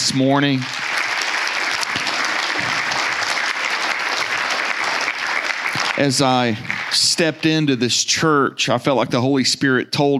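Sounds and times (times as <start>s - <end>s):
audience applause: 0.0s - 7.9s
speech: 0.1s - 0.8s, 6.0s - 10.1s.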